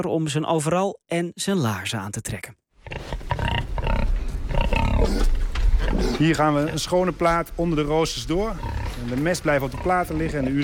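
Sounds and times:
speech: 0.0 - 3.5, 5.9 - 10.6
pigs grunting and squealing in a pig barn in De Heurne, Gelderland: 2.8 - 6.9, 8.4 - 10.6
steady low rumble: 3.6 - 10.5.

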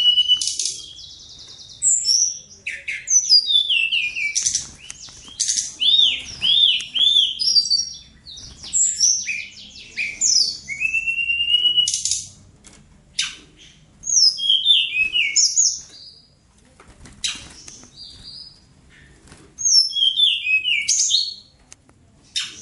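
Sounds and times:
bird song with whistles: 0.0 - 12.3, 14.0 - 16.2, 19.6 - 21.4.

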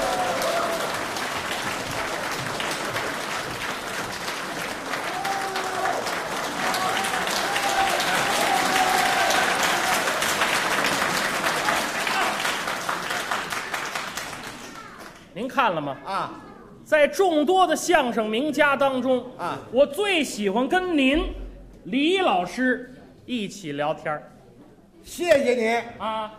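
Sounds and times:
audience applause welcoming crosstalk comedians: 0.0 - 15.2
speech: 15.6 - 24.3, 25.0 - 26.3.

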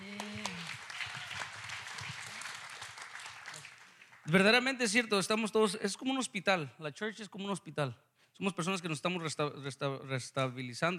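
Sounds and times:
church congregation applauding: 0.0 - 4.6
speech: 4.3 - 10.9.

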